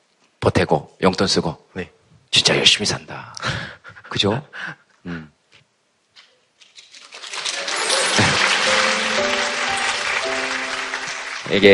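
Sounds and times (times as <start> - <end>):
speech: 0.4 - 5.4, 11.5 - 11.7
audience applause: 7.0 - 11.7
laughter: 7.6 - 11.0.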